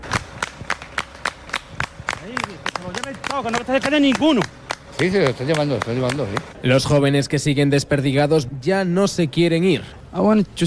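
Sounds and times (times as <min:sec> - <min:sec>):
crowd clapping in rhythm for soldiers: 0:00.0 - 0:06.6
speech: 0:03.3 - 0:10.6.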